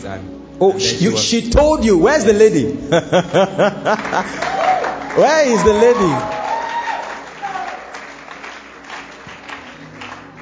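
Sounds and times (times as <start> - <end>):
speech: 0.0 - 4.5, 5.2 - 6.4
laughter: 2.6 - 6.4
audience clapping weakly at a church gathering: 3.9 - 10.4.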